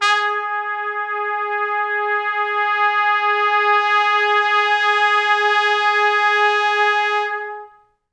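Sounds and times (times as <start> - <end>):
pop brass note G sharp 3: 0.0 - 7.8.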